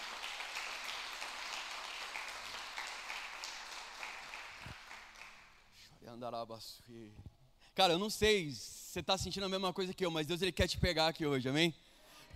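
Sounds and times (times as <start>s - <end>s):
audience applause: 0.0s - 5.4s
speech: 6.1s - 11.8s.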